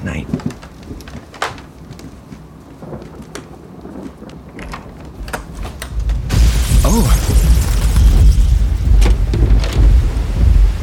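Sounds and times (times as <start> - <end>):
speech: 0.0 - 0.5
loud thunderclap: 2.8 - 10.8.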